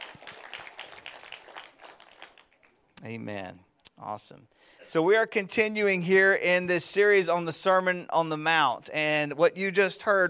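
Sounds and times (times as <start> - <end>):
audience applause: 0.0 - 2.8
speech: 3.0 - 10.2.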